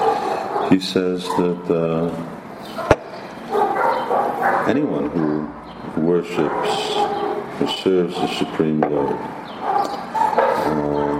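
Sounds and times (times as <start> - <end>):
dog barking: 0.0 - 1.6, 2.7 - 4.9, 6.4 - 8.5, 9.1 - 10.9
speech: 0.7 - 2.9, 4.7 - 9.4.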